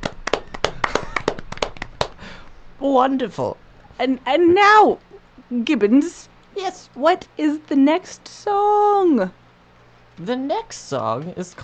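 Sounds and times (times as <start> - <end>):
small audience applause: 0.0 - 2.2
speech: 2.8 - 9.4, 10.2 - 11.6.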